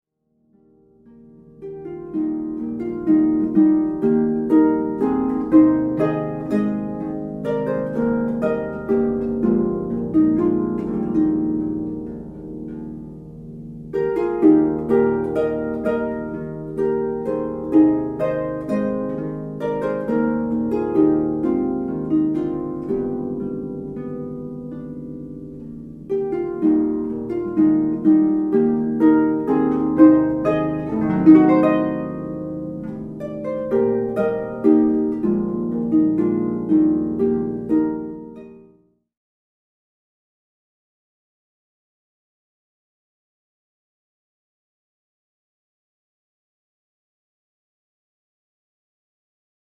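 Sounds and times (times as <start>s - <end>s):
Irish harp music: 0.4s - 39.0s.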